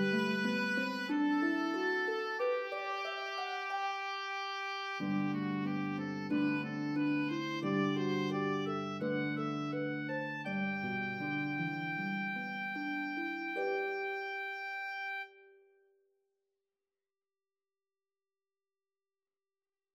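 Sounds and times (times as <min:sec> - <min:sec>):
harp melody: 0:00.0 - 0:15.4
oboe: 0:00.0 - 0:15.5.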